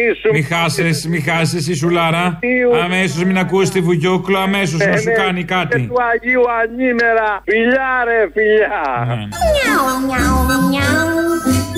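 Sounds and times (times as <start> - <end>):
speech: 0.0 - 11.5
little cat meowing: 9.4 - 11.0.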